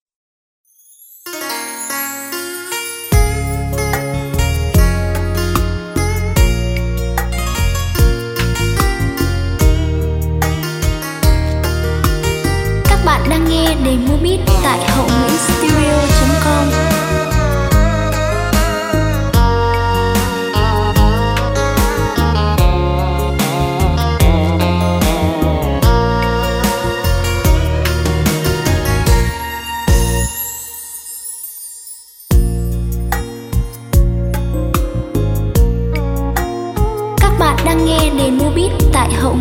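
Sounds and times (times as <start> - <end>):
music beat playback: 3.1 - 30.8, 32.3 - 39.3.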